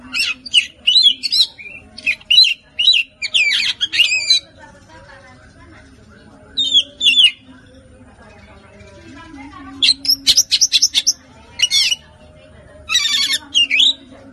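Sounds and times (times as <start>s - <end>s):
Oriental magpie-robin chattering song of scratchy and whistled notes: 0.0s - 4.6s, 6.6s - 7.5s, 8.5s - 12.0s, 12.9s - 14.1s.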